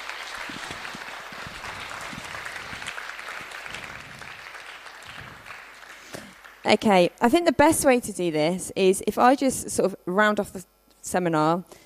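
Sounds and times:
audience applause: 0.0 - 6.7
speech: 6.6 - 11.8.

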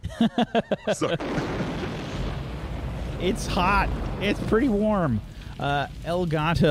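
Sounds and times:
laughter: 0.0 - 1.3
speech: 0.2 - 1.7, 3.2 - 6.7
napalm bomb explosion in a video game: 1.0 - 6.7.

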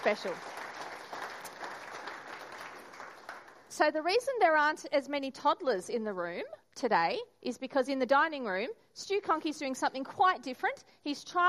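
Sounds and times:
speech: 0.0 - 0.6, 3.8 - 11.4
audience clapping for new babies: 0.0 - 3.8.

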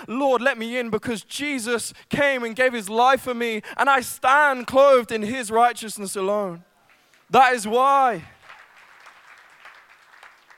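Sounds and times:
speech: 0.0 - 6.7, 7.3 - 8.4
audience applause: 8.4 - 10.5.

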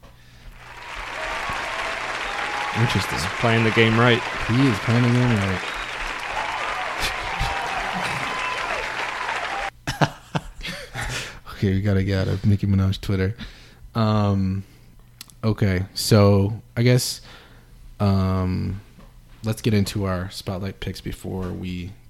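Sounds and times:
applause: 0.4 - 9.7
laughter: 0.6 - 11.2
speech: 2.8 - 5.8, 11.6 - 14.7, 15.4 - 17.4, 18.0 - 22.0.

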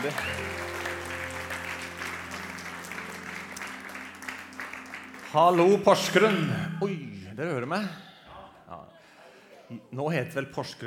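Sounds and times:
speech: 0.0 - 0.5, 5.3 - 8.0, 9.7 - 10.8
crowd applauding: 0.0 - 6.4.

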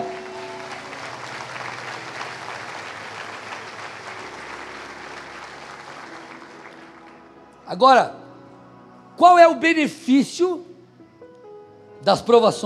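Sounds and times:
audience applauding: 0.0 - 7.4
speech: 7.7 - 8.2, 9.2 - 10.7, 12.0 - 12.6.

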